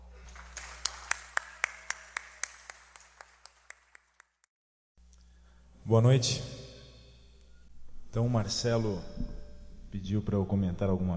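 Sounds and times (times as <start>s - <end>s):
audience applause: 0.0s - 4.4s
speech: 5.9s - 6.6s, 8.2s - 11.1s.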